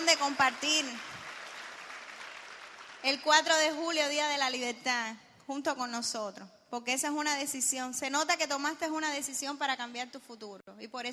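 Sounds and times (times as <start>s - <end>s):
crowd applause: 0.0s - 3.0s
speech: 0.1s - 1.2s, 3.0s - 11.1s.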